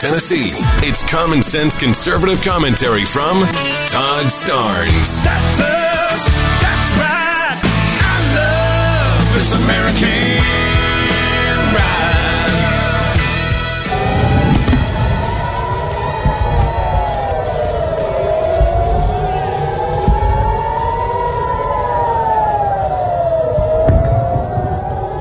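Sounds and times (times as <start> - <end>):
speech: 0.0 - 7.3, 9.4 - 12.4
air raid siren wailing over Israel during missile fire: 0.7 - 6.3, 7.9 - 25.1.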